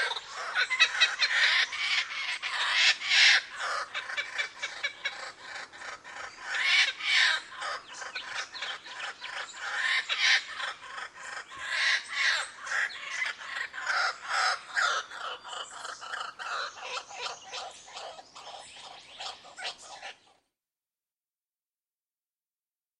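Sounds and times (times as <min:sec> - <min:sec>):
laughing kookaburra calling: 0:00.0 - 0:18.2.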